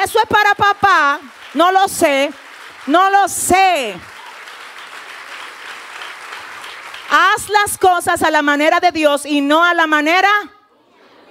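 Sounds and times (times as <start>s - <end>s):
speech: 0.0s - 4.1s, 7.1s - 10.6s
audience applause: 0.7s - 7.8s.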